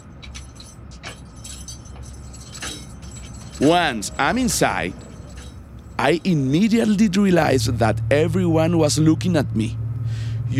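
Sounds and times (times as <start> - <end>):
officer's keys jangling: 0.0 - 7.3
speech: 3.6 - 5.0, 6.0 - 9.8.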